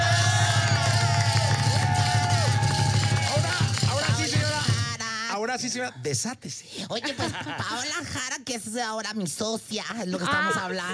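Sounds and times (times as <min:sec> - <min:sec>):
audience applause: 0:00.0 - 0:04.7
speech: 0:05.6 - 0:10.9
laughter: 0:06.9 - 0:08.0.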